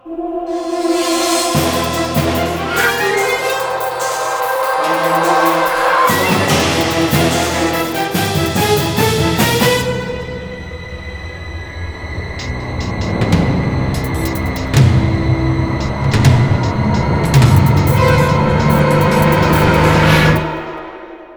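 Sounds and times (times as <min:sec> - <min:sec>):
car crash: 0:00.0 - 0:21.3.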